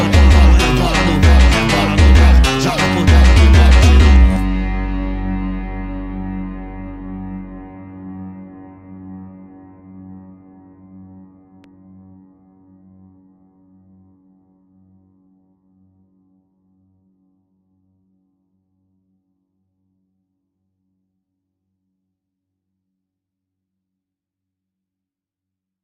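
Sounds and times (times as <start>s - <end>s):
montagem funk music: 0.0s - 7.8s.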